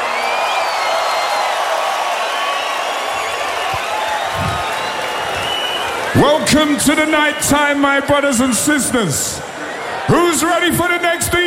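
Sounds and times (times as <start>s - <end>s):
festival crowd at Tomorrowland cheering and applauding for a DJ: 0.0s - 11.4s
whistle-like tones: 3.7s - 6.0s
speech: 6.5s - 9.5s, 10.1s - 11.4s.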